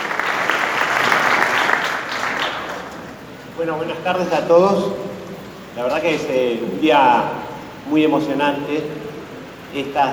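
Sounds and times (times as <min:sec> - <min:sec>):
audience applause: 0:00.0 - 0:03.0
speech: 0:03.6 - 0:05.0, 0:05.8 - 0:09.0, 0:09.7 - 0:10.1.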